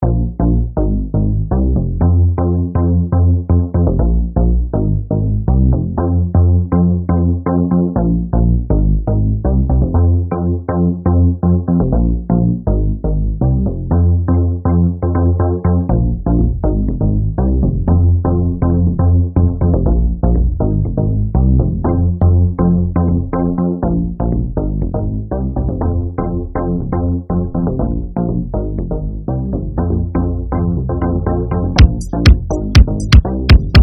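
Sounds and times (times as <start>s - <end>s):
music: 0.0s - 33.8s.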